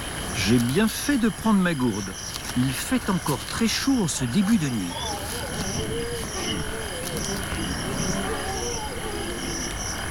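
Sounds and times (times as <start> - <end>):
speech: 0.4 - 6.0
grunting in savanna: 4.9 - 9.7.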